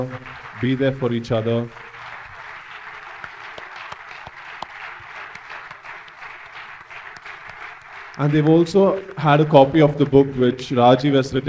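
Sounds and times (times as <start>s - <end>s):
speech: 0.0s - 1.8s, 8.2s - 11.4s
audience applause: 0.0s - 11.4s.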